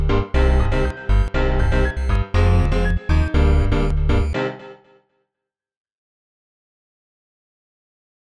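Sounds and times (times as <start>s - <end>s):
instrumental music: 0.0s - 5.0s.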